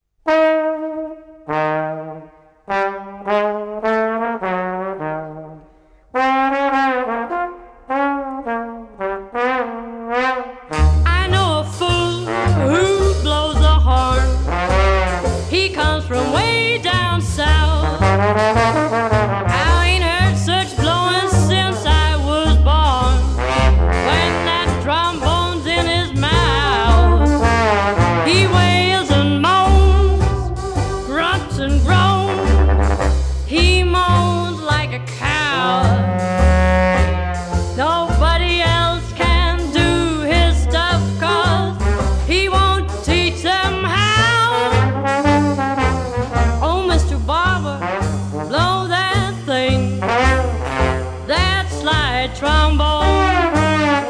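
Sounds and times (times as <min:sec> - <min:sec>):
trombone: 0:00.2 - 0:54.0.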